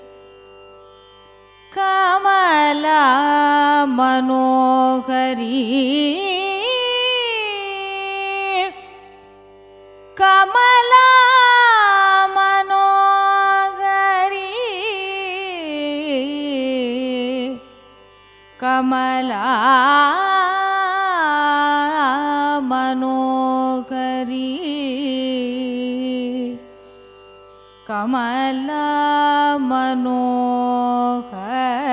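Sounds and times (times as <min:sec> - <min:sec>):
carnatic raga music: 0:00.0 - 0:31.9.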